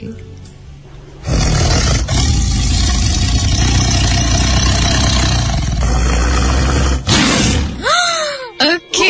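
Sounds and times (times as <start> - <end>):
tiger roaring: 1.2 - 7.8.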